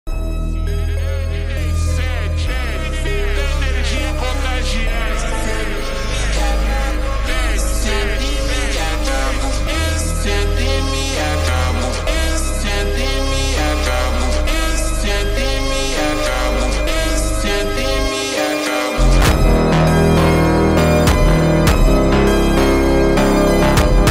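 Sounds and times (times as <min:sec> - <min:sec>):
slowed funk remix with reverb: 0:00.6 - 0:24.0.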